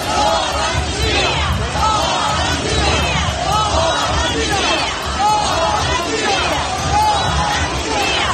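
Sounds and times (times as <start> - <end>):
huge protest crowd chanting and shouting in an outdoor square: 0.0 - 8.3.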